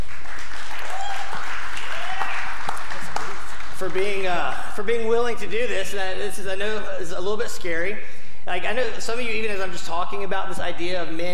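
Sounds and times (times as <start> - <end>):
crowd applauding: 0.0 - 4.7
speech: 3.8 - 11.3.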